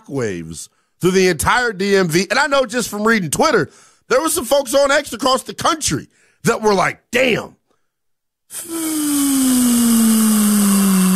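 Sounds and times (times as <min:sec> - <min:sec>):
speech: 0:00.1 - 0:07.6, 0:08.5 - 0:10.4
air let out of a balloon: 0:08.5 - 0:11.1.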